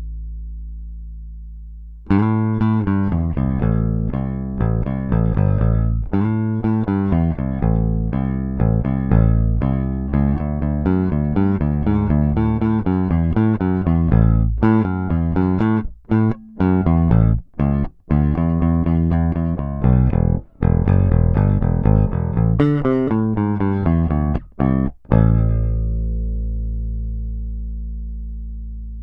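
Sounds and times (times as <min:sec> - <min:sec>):
bass guitar with rock pick, linear: 0:00.0 - 0:29.0.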